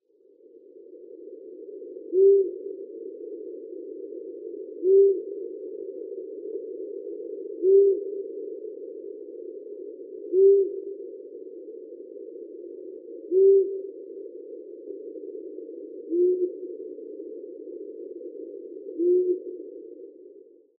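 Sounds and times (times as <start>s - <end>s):
owl hooting: 2.1s - 2.6s, 4.8s - 5.4s, 7.6s - 8.1s, 10.3s - 10.9s, 13.3s - 13.9s, 16.1s - 16.7s, 18.9s - 19.6s.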